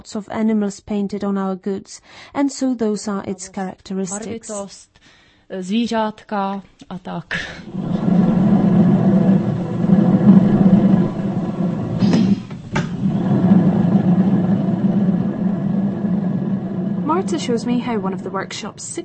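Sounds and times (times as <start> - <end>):
speech: 0.0 - 8.3, 17.3 - 19.0
pottery wheel motor spinning a lump of clay in a ceramics workshop: 7.6 - 19.0.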